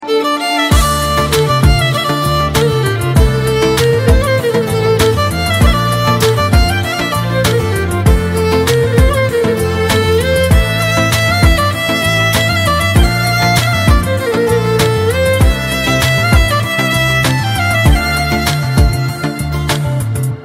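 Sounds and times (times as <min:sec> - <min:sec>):
instrumental song tone: 0:00.0 - 0:20.4.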